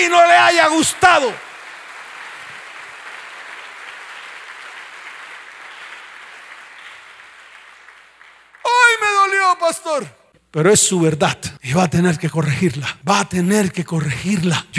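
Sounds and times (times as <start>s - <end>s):
speech: 0.0s - 1.5s, 9.5s - 14.7s
audience applause: 0.0s - 9.4s.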